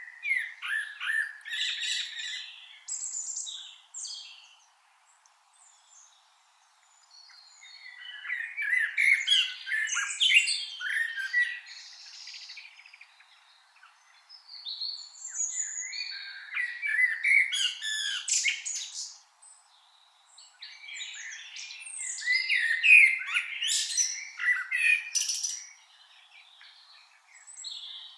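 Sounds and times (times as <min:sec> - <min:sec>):
common blackbird calls: 0:00.0 - 0:04.6, 0:07.2 - 0:19.2, 0:20.5 - 0:28.1.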